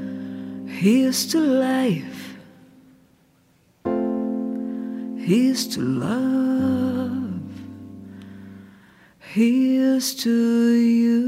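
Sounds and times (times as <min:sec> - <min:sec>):
woman singing in Portuguese and English: 0:00.7 - 0:02.7, 0:05.2 - 0:07.8, 0:09.2 - 0:11.2.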